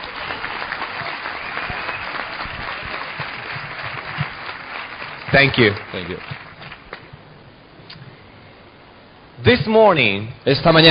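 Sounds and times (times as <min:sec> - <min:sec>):
audience applause: 0:00.0 - 0:07.0
speech: 0:05.3 - 0:06.3, 0:09.4 - 0:10.8.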